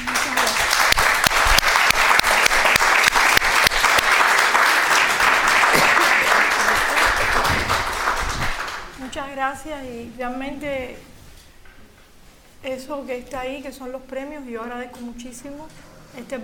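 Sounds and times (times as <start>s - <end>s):
audience applause: 0.0s - 9.0s
speech: 9.4s - 11.1s, 12.6s - 16.4s.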